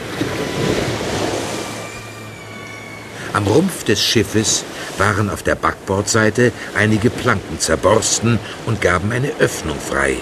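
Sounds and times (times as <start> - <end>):
high waves crashing against rocks: 0.0 - 10.1
speech: 3.4 - 10.1.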